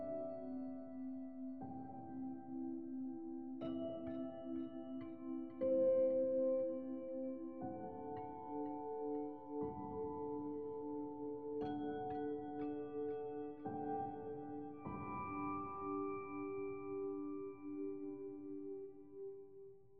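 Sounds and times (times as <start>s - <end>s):
airy piano: 0.0s - 19.9s.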